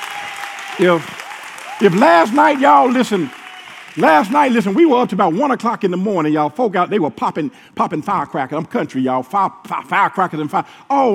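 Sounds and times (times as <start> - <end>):
audience applause: 0.0 - 5.0
loud voiced cheer: 0.0 - 5.0
speech: 0.8 - 1.2, 1.8 - 3.4, 4.0 - 11.1.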